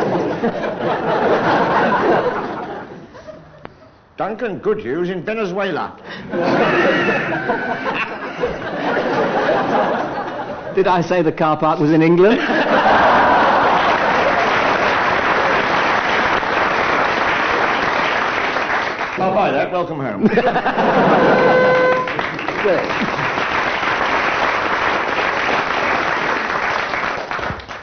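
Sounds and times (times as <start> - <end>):
laughter: 0.0 - 3.9, 6.2 - 10.8, 12.3 - 14.9, 20.2 - 23.4
speech: 0.4 - 1.0, 4.2 - 10.0, 10.8 - 13.1, 19.2 - 21.6, 22.6 - 23.2
studio audience applause: 12.8 - 19.3, 21.0 - 27.8.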